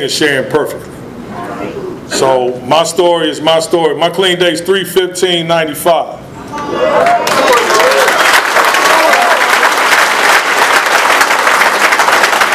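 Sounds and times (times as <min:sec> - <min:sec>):
speech: 0:00.0 - 0:08.1
audience applause: 0:06.8 - 0:12.5.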